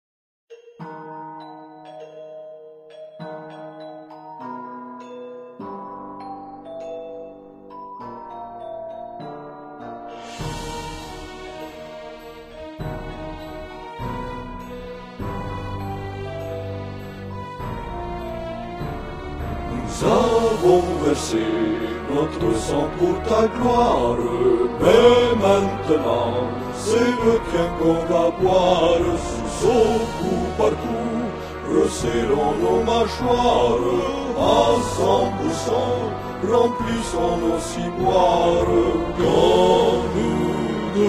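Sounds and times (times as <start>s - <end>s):
anthem: 10.2s - 41.0s.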